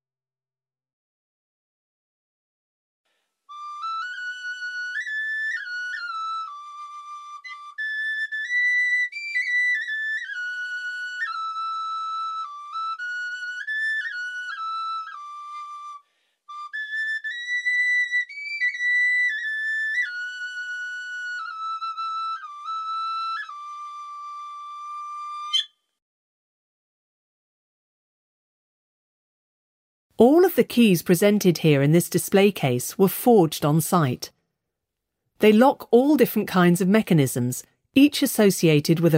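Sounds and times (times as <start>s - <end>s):
medieval bone and wooden flutes playing: 3.5s - 25.8s
speech: 30.2s - 34.4s, 35.4s - 39.1s.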